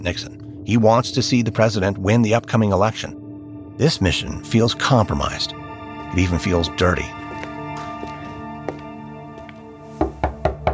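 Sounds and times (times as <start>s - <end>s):
speech: 0.0s - 3.2s, 3.8s - 7.2s
soft sustained musical drone: 0.0s - 10.7s
firm knocking on an office door: 10.1s - 10.7s.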